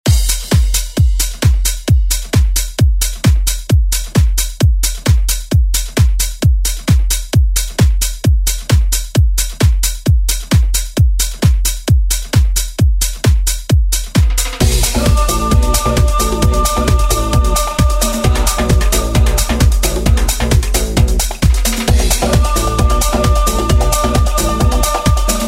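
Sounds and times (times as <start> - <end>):
90s drum beat: 0.0 - 25.4.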